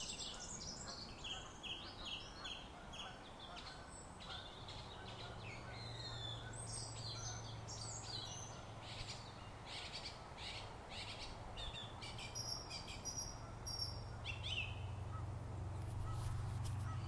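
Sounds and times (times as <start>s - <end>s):
many birds calling: 0.0s - 17.0s.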